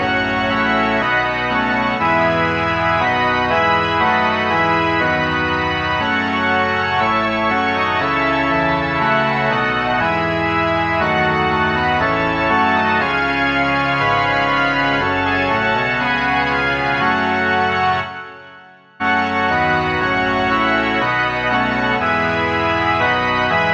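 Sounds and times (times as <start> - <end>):
pipe organ: 0.0 - 23.7.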